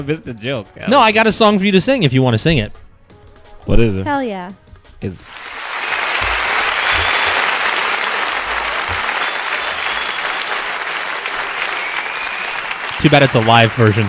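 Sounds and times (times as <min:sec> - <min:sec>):
speech: 0:00.0 - 0:02.8, 0:03.6 - 0:05.5, 0:13.0 - 0:14.0
applause from a crowd on a live recording: 0:05.2 - 0:14.0.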